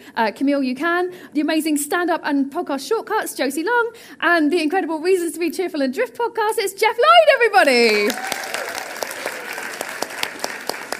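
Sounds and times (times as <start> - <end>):
speech: 0.1 - 8.5
live audience clapping: 7.6 - 10.9.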